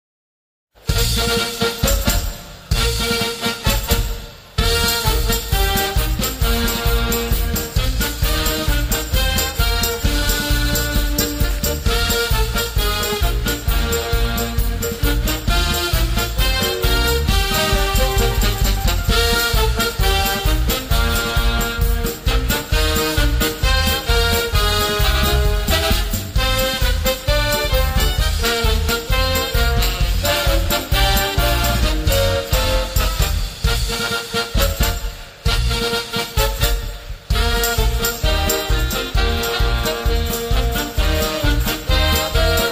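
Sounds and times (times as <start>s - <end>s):
circus music: 0.8s - 42.6s.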